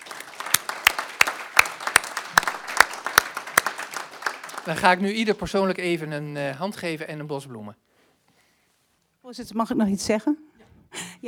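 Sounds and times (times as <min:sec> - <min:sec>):
light audience applause: 0:00.0 - 0:05.9
speech: 0:04.7 - 0:07.8, 0:09.3 - 0:10.6.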